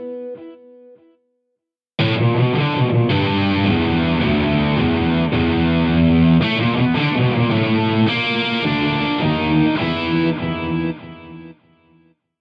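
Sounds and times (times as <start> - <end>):
hard rock music: 2.0 - 11.6.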